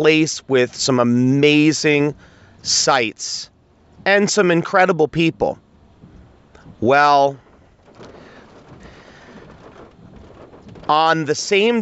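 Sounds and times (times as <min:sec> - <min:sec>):
speech: 0:00.0 - 0:05.6, 0:06.8 - 0:07.4, 0:10.9 - 0:11.8
heavy rain pounding: 0:06.0 - 0:11.8.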